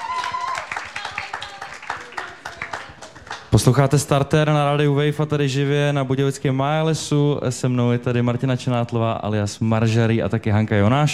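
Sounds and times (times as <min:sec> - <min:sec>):
audience applause: 0:00.0 - 0:03.8
speech: 0:03.5 - 0:11.1.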